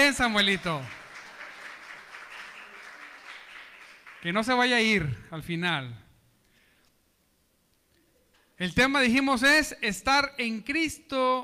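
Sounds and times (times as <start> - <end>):
audience applauding: 0.0 - 4.8
speech: 0.1 - 1.0, 4.2 - 6.0, 8.6 - 11.4.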